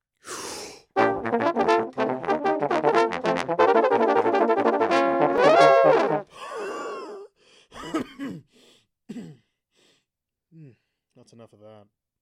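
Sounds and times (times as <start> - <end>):
note-accurate arpeggios: 1.0 - 6.2.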